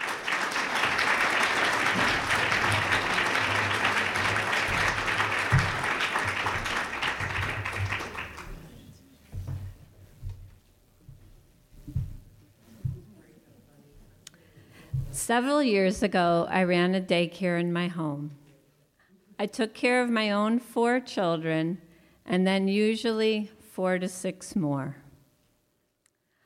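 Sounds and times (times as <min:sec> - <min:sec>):
audience applause: 0:00.0 - 0:09.0
speech: 0:15.3 - 0:18.4, 0:19.4 - 0:25.0.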